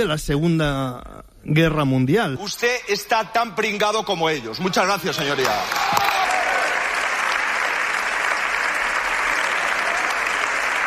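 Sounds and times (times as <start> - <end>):
speech: 0.0 - 6.3
parliamentary applause: 5.0 - 10.8.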